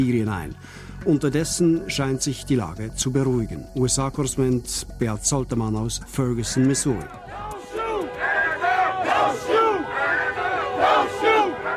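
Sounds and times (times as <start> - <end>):
speech: 0.0 - 7.5
protest crowd chanting at the roadside in Ferguson: 6.5 - 11.7.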